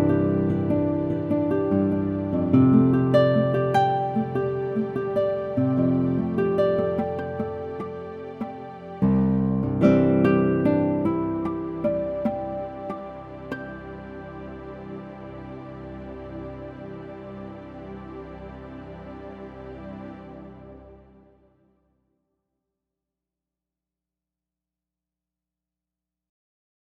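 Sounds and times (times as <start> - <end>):
nylon-string guitar: 0.0 - 21.3.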